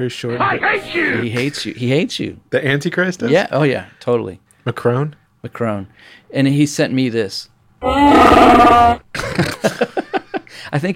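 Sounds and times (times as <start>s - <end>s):
speech: 0.0s - 10.0s, 10.6s - 10.9s
loud rumbling burp: 7.8s - 9.6s
laughter: 9.2s - 10.6s.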